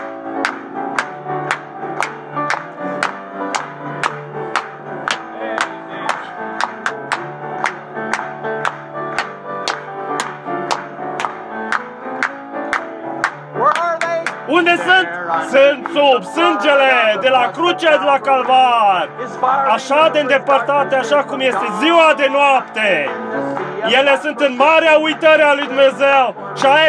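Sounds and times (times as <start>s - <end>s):
audience applause: 0.0s - 15.0s
speech: 15.5s - 26.8s.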